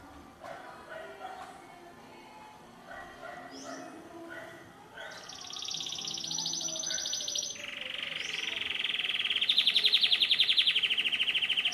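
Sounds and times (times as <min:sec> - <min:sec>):
canary song of trills: 0:05.1 - 0:11.7.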